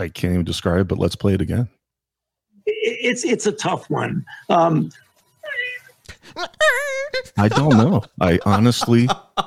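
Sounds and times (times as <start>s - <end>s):
speech: 0.0s - 1.8s, 3.0s - 5.0s, 6.3s - 9.4s
man squeaking and whimpering: 4.7s - 8.2s
laughter: 6.1s - 9.4s.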